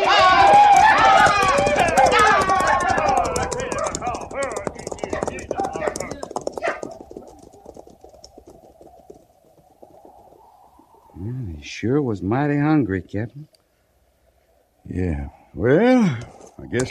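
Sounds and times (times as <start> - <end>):
whoops and cries: 0.0 - 3.5
herd of buffalo running: 0.0 - 11.3
speech: 12.2 - 13.6, 14.9 - 16.8.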